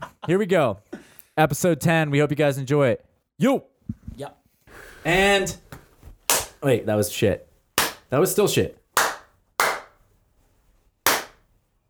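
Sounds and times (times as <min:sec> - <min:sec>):
speech: 0:00.3 - 0:05.7, 0:06.6 - 0:07.5, 0:08.1 - 0:08.8
hand claps for audio sync: 0:05.7 - 0:06.6, 0:07.8 - 0:08.1, 0:09.0 - 0:10.0, 0:11.1 - 0:11.4.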